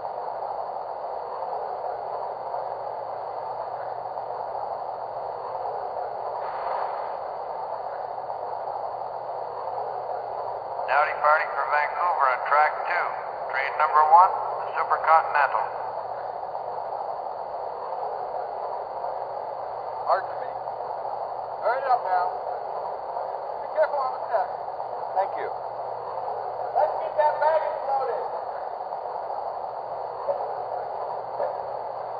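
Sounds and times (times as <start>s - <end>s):
electric trains: 0.0s - 32.1s.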